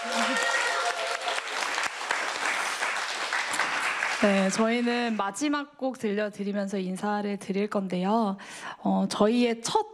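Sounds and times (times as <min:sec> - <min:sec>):
audience applause: 0:00.0 - 0:05.2
speech: 0:04.2 - 0:09.9.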